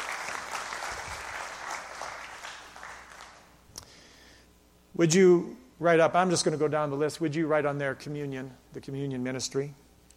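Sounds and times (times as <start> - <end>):
church congregation applause for the greeters at a morning service: 0.0 - 3.6
speech: 5.0 - 9.8.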